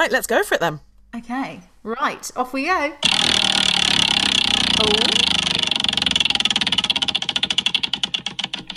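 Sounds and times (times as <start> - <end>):
speech: 0.0 - 6.0
bright whirring noise: 2.2 - 8.7
spinning wheel picker ratcheting clicks: 2.8 - 8.7.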